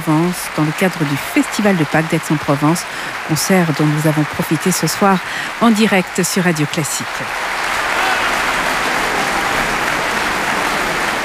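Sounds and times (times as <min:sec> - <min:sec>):
speech: 0:00.0 - 0:08.0
large audience applause in a concert hall: 0:00.0 - 0:11.2
faint shouts of approval: 0:07.6 - 0:11.2.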